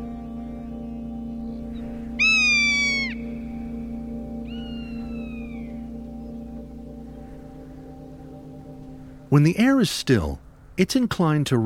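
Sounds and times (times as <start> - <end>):
steady low hum: 0.0 - 11.1
Rough-legged Hawk scream call: 2.2 - 3.4
speech: 9.3 - 11.6.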